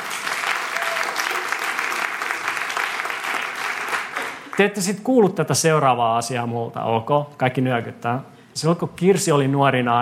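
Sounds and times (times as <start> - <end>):
audience applause: 0.0 - 4.7
speech: 4.6 - 9.9.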